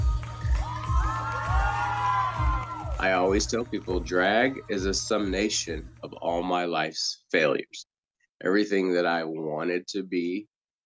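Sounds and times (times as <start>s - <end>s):
crowd cheering wildly: 0.0s - 4.9s
heavy bass beat: 0.0s - 6.2s
speech: 3.0s - 10.5s.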